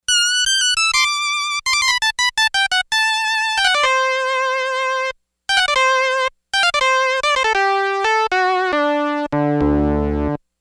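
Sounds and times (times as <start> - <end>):
synth solo: 0.1 - 10.4.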